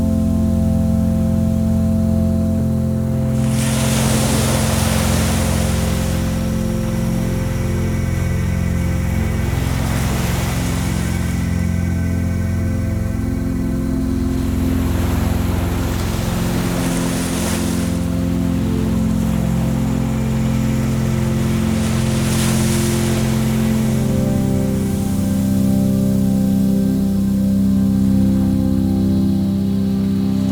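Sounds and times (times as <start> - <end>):
relaxing music: 0.0 - 30.5.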